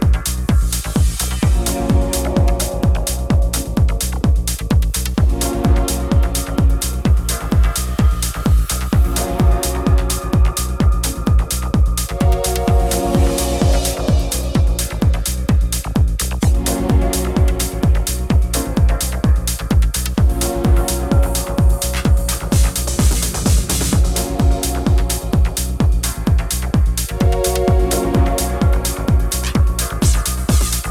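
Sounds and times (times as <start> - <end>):
synthesizer pattern break: 0.0 - 30.8.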